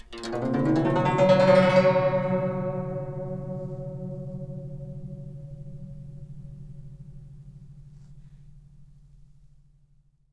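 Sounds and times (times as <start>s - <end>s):
guqin plucked: 0.0s - 8.7s.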